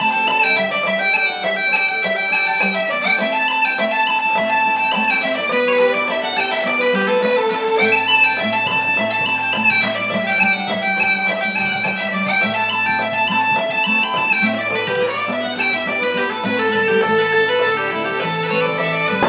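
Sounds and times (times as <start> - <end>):
Irish music: 0.0 - 19.2.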